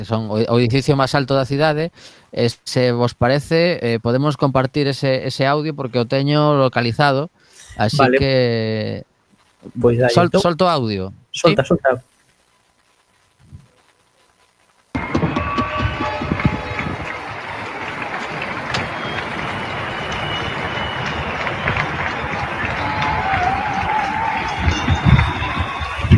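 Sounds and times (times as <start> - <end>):
speech: 0.0 - 12.1
recorded crowd applause: 15.0 - 26.1.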